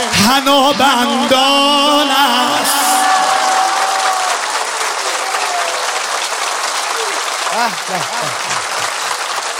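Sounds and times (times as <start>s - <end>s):
audience clapping at a celebration for the birth night of Imam Ali: 0.0s - 9.5s
speech: 0.2s - 2.4s, 7.6s - 8.4s
people singing: 0.2s - 3.9s
laughter: 7.0s - 9.2s.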